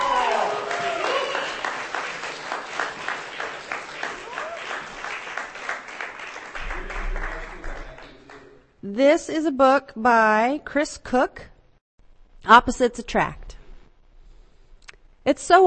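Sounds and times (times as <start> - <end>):
applause for a performer at a book reading: 0.0 - 8.6
low rumble: 6.6 - 8.0
speech: 9.0 - 11.5, 12.5 - 13.4, 15.2 - 15.6.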